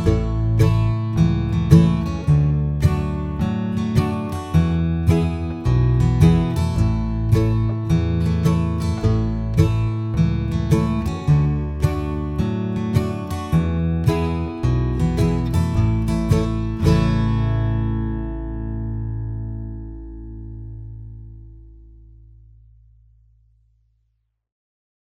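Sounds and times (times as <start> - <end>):
slow rhythm: 0.0 - 20.1.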